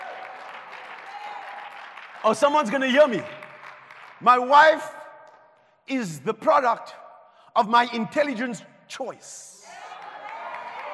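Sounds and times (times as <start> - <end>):
audience clapping hands: 0.0 - 5.4, 9.6 - 10.9
speech: 2.2 - 3.4, 4.2 - 5.0, 5.9 - 7.0, 7.6 - 9.5.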